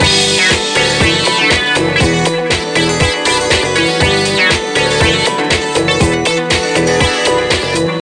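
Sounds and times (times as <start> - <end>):
dance music: 0.0 - 8.0.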